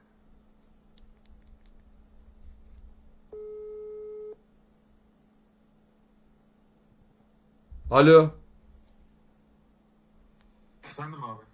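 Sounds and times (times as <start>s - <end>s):
phone ringback tone beep while calling: 3.4s - 4.4s
speech: 7.9s - 8.4s.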